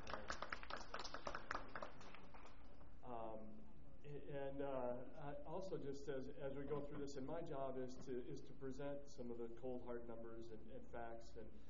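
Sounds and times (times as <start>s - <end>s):
audience applause: 0.0s - 2.6s
speech: 4.5s - 11.6s.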